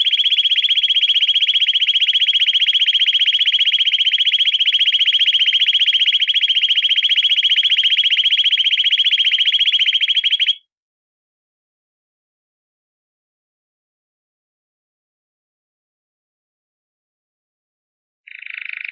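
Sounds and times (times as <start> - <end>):
canary singing: 0.0 - 10.6.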